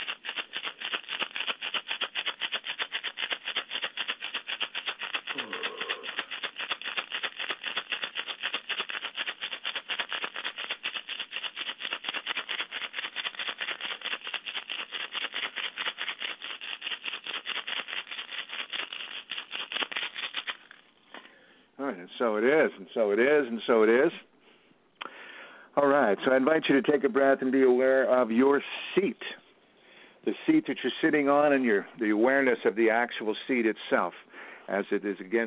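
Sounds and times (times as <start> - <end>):
hand rattle shaken in a chakra healing session: 0.0 - 20.8
speech: 22.1 - 24.3, 25.8 - 29.4, 30.3 - 35.4.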